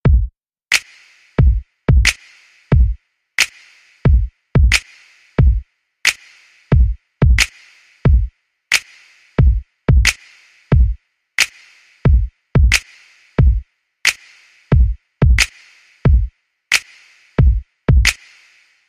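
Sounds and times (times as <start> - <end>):
very hot music beat: 0.0 - 18.8.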